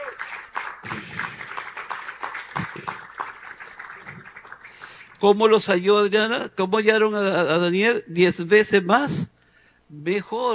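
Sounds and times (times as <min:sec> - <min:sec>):
audience applause: 0:00.0 - 0:05.2
speech: 0:05.2 - 0:09.3, 0:09.9 - 0:10.5.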